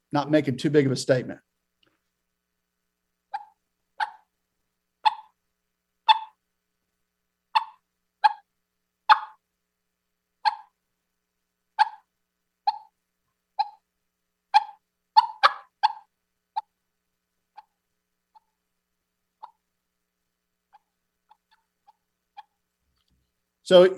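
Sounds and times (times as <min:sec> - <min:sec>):
speech: 0:00.1 - 0:01.5, 0:23.7 - 0:23.9
hen turkey contact clucks made on a mouth call: 0:03.3 - 0:04.3, 0:05.0 - 0:05.4, 0:06.0 - 0:06.4, 0:07.5 - 0:08.5, 0:09.1 - 0:09.4, 0:10.4 - 0:10.8, 0:11.8 - 0:13.0, 0:13.6 - 0:13.8, 0:14.5 - 0:16.8, 0:17.5 - 0:17.7, 0:19.4 - 0:19.6, 0:20.7 - 0:22.6.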